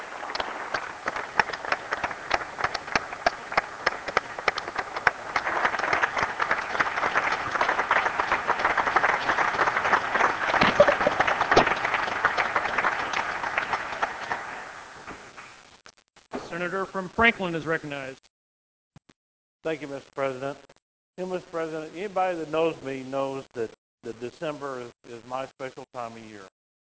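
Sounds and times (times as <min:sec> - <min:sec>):
round of applause: 0:00.0 - 0:15.6
speech: 0:17.1 - 0:18.3, 0:19.6 - 0:26.6.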